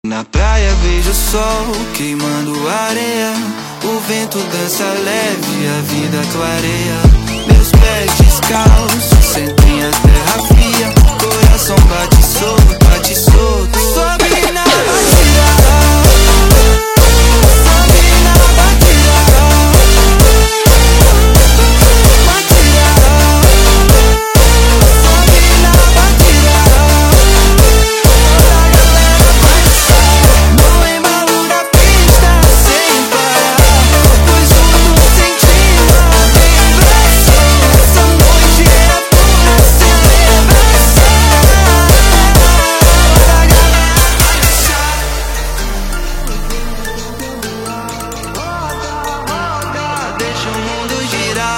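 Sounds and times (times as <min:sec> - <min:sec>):
phonk montagem jumpstyle beat: 0:00.4 - 0:47.2.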